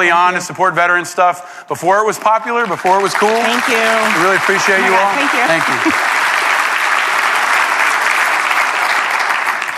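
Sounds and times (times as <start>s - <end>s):
speech: 0.0s - 6.2s
audience applause: 2.6s - 9.7s.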